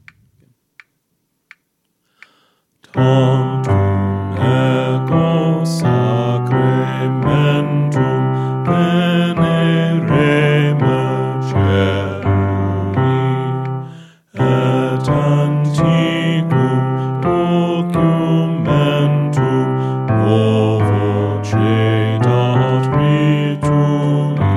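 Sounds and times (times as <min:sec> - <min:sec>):
bass voice choir practice track: 0:02.9 - 0:24.5.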